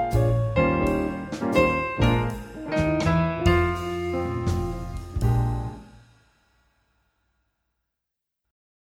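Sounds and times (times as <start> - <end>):
piano playing I and IV chords in swing: 0.0 - 6.0.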